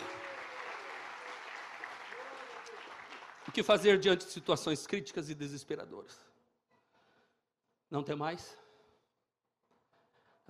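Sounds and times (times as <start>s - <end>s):
audience applauding: 0.0s - 4.4s
speech: 3.4s - 6.3s, 7.9s - 8.6s.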